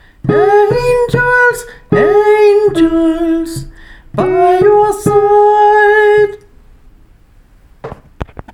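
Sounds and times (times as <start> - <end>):
soprano singing: 0.2 - 6.5.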